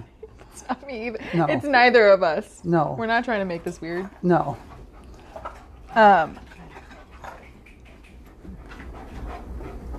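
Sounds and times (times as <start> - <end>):
speech: 0.6 - 4.7, 6.0 - 6.5
dog breathing heavily: 3.0 - 9.9.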